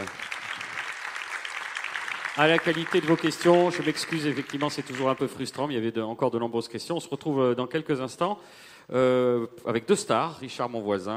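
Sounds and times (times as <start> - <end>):
audience applause: 0.0 - 5.6
speech: 2.4 - 11.1.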